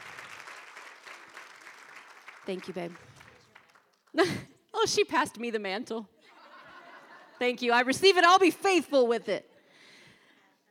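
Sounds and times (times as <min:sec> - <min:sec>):
audience applause: 0:00.0 - 0:04.1
speech: 0:02.5 - 0:03.2, 0:04.1 - 0:06.2, 0:07.4 - 0:09.4
laughter: 0:06.2 - 0:07.6.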